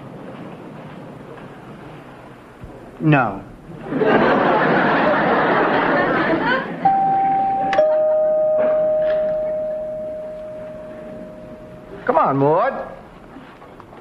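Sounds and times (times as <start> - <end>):
speech: 3.0 - 4.3, 12.2 - 12.8
audience laughter: 3.8 - 6.9
doorbell ringing with two chime tones: 6.8 - 12.1.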